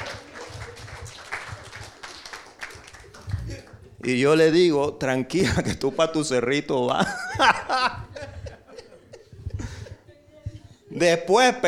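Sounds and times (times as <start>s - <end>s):
lively crowd clapping: 0.0s - 4.0s
speech: 4.0s - 8.0s, 11.0s - 11.6s
laughter: 5.4s - 6.2s, 6.9s - 10.2s.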